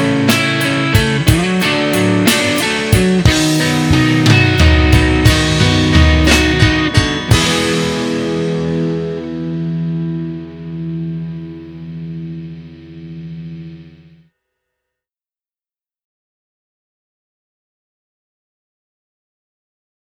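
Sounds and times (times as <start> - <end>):
music without bass: 0.0 - 14.3.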